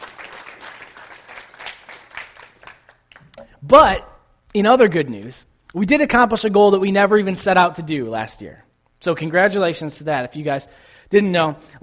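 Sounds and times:
round of applause: 0.0 - 3.3
speech: 3.6 - 11.8.

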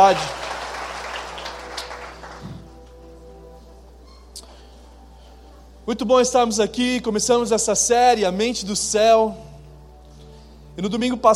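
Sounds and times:
speech: 0.0 - 0.4, 5.9 - 9.5, 10.8 - 11.3
audience applause: 0.0 - 2.8.

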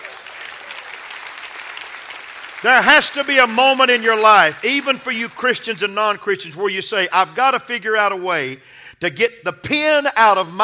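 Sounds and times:
audience hand clapping applause: 0.0 - 5.9
speech: 2.6 - 10.6.

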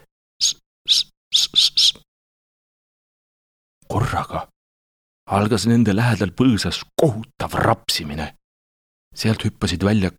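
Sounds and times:
whistle blown: 0.4 - 2.0
speech: 4.0 - 4.6, 5.3 - 8.4, 9.1 - 10.1.

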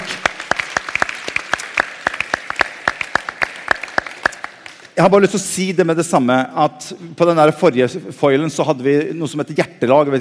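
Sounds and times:
audience applause: 0.0 - 4.9
speech: 5.0 - 10.1.

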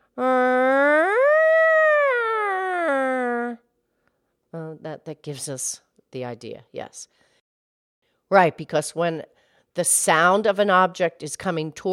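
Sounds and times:
voice imitating passing siren: 0.1 - 3.6
speech: 5.1 - 7.2, 8.3 - 11.9.

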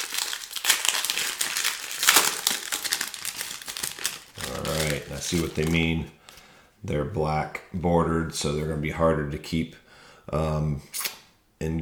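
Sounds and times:
plastic wrapper of a 2007 baseball card pack torn open: 0.0 - 6.4
speech: 5.2 - 6.2, 6.8 - 11.0, 11.6 - 11.8.

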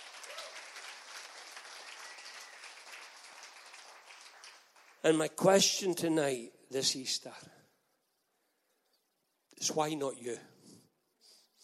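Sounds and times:
audience applause: 0.0 - 5.2
speech: 5.0 - 7.6, 9.6 - 10.5.

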